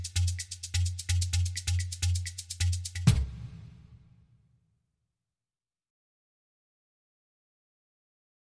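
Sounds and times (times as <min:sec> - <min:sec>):
Cuban hand percussion loop: 0:00.0 - 0:03.2.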